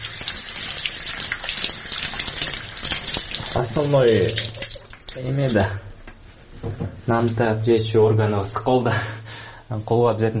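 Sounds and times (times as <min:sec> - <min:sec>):
running water while washing hands: 0:00.0 - 0:06.2
speech: 0:03.6 - 0:04.5, 0:05.2 - 0:05.9, 0:06.6 - 0:10.3.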